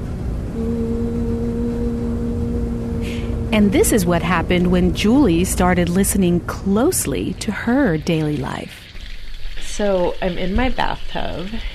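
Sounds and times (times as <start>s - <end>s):
clothes dryer running with low hum: 0.0s - 8.9s
speech: 3.5s - 8.8s, 9.8s - 11.7s.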